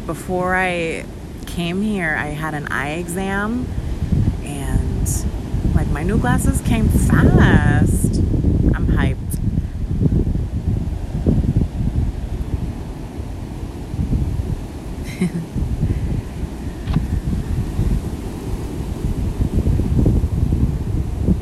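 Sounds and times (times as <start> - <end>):
waves crashing: 0.0 - 21.4
speech: 0.1 - 3.8, 6.0 - 9.3.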